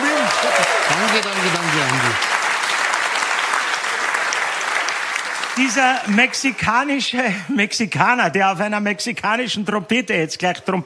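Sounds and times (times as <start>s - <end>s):
crowd applause: 0.0s - 7.1s
speech: 5.6s - 10.8s.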